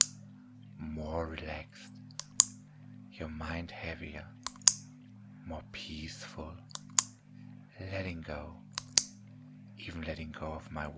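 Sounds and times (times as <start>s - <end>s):
speech: 0.8s - 2.1s, 3.2s - 4.5s, 5.5s - 6.9s, 7.8s - 8.6s, 9.8s - 10.9s
hypnotist's clicker clicking: 2.1s - 2.6s, 4.4s - 4.8s, 6.7s - 7.1s, 8.8s - 9.1s.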